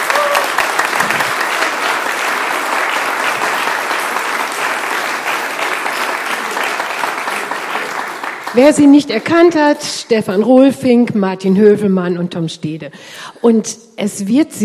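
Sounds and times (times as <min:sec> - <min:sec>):
audience applause: 0:00.0 - 0:09.4
speech: 0:08.6 - 0:14.6.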